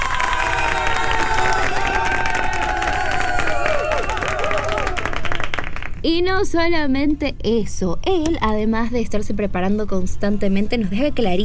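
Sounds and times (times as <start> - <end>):
excited shouts and whoops: 0.0 - 5.1
large crowd applauding: 0.0 - 6.0
speech: 6.0 - 11.4.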